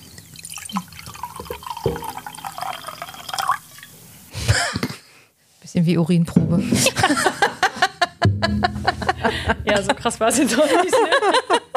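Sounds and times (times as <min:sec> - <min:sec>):
coffee being poured: 0:00.2 - 0:03.9
speech: 0:05.7 - 0:07.3, 0:09.2 - 0:11.6
laughter: 0:06.8 - 0:11.7.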